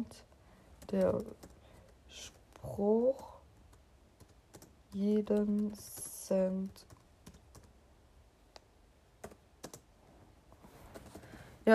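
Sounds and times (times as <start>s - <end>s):
typing on a laptop keyboard: 0.8s - 2.6s, 3.5s - 7.8s, 9.2s - 9.9s, 10.9s - 11.3s
speech: 0.9s - 1.5s, 2.1s - 3.3s, 4.9s - 6.9s.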